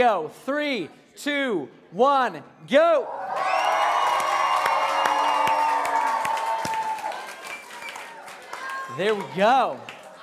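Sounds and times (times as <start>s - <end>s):
speech: 0.0s - 3.5s, 9.0s - 9.9s
large crowd cheering, yelling and whooping: 3.0s - 10.2s
scattered sharp claps: 4.6s - 10.2s.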